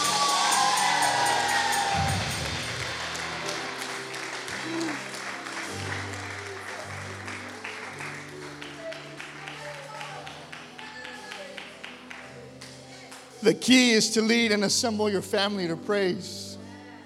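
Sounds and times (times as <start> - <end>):
crowd cheering and shouting in praise: 0.0 - 5.1
crowd applause: 0.0 - 13.3
speech: 13.4 - 16.4.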